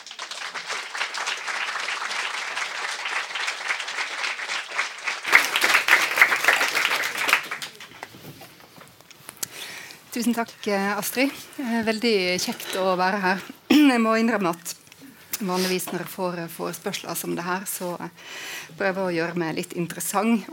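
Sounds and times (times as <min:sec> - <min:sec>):
audience applause: 0:00.0 - 0:08.2
speech: 0:10.2 - 0:14.7, 0:15.4 - 0:20.5.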